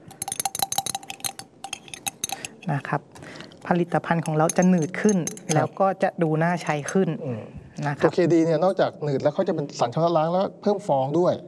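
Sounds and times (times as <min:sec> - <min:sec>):
utensil clinking against a container while stirring thickener into liquid soap: 0:00.0 - 0:05.8
speech: 0:02.6 - 0:11.4.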